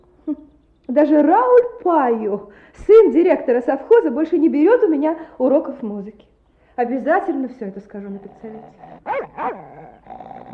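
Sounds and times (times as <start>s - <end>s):
speech: 0.3s - 10.3s
dog growling: 7.9s - 10.5s
dog barking: 9.0s - 10.5s.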